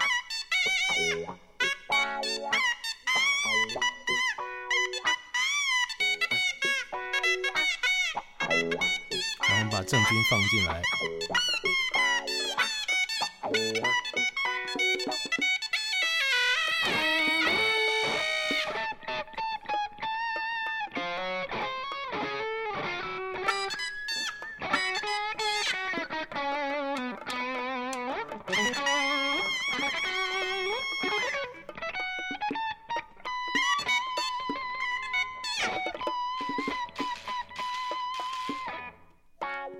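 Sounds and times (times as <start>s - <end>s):
double-reed suona playing: 0.0s - 38.9s
overdriven electric guitar: 0.0s - 39.7s
speech: 1.0s - 1.4s, 10.0s - 11.6s.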